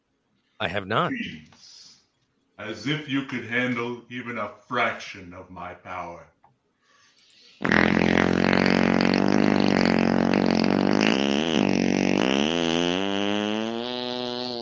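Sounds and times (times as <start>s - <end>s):
speech: 0.6s - 1.7s, 2.6s - 6.4s
fake fart sound: 7.6s - 14.5s.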